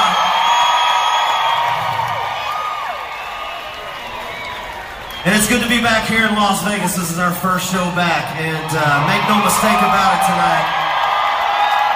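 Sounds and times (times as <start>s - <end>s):
whoops and high shouts: 0.0s - 4.8s, 9.5s - 11.9s
big concert crowd cheering: 0.0s - 11.9s
speech: 5.2s - 10.8s.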